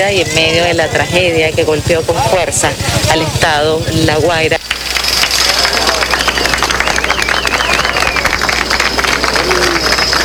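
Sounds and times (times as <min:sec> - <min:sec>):
speech: 0:00.0 - 0:04.8
people applauding amid a rescue in Caraballeda: 0:04.6 - 0:10.2.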